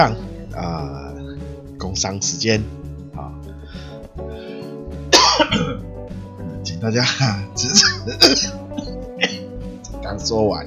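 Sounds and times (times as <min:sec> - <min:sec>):
speech: 0:00.0 - 0:01.2, 0:01.8 - 0:03.4, 0:06.8 - 0:08.6, 0:10.1 - 0:10.6
person coughing: 0:05.2 - 0:05.9, 0:07.9 - 0:09.5.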